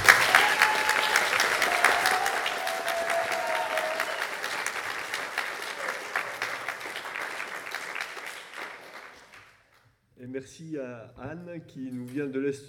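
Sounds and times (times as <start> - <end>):
audience applauding the orchestra: 0.0 - 9.6
speech: 10.4 - 12.6.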